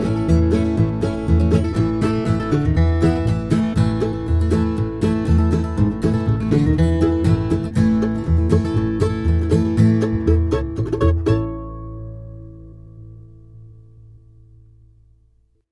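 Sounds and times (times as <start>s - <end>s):
rhythm: 0.0s - 12.1s.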